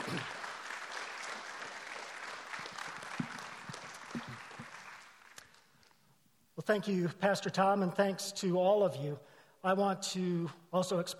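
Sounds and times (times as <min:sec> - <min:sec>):
church congregation applauding a guest speaker: 0:00.0 - 0:06.0
speech: 0:06.7 - 0:11.1.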